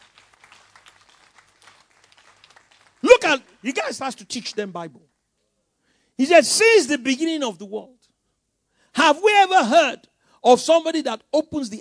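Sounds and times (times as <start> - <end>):
crowd clapping: 0.0 - 4.8
speech: 3.2 - 5.1, 6.2 - 8.0, 9.0 - 11.7.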